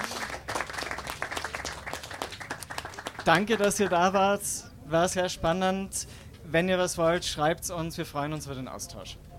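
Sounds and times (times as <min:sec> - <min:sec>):
audience applauding: 0:00.0 - 0:04.2
speech: 0:03.2 - 0:09.2.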